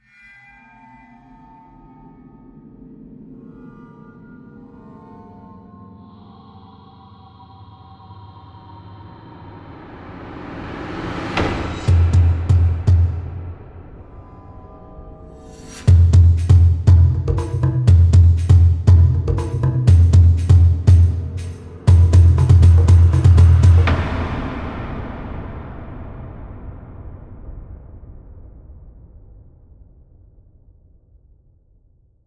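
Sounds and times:
haunting tribal trailer music: 6.0 - 29.0.

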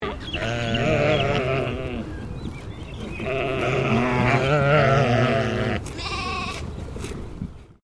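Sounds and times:
English Leicester sheep baaing: 0.0 - 2.1, 3.0 - 6.6.

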